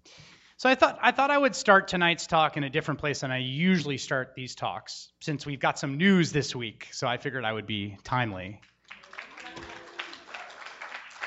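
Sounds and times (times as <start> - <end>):
speech: 0.6 - 8.7
audience applause: 8.8 - 11.2.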